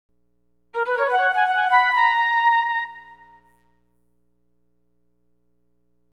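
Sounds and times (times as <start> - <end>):
flute: 0.8 - 3.6.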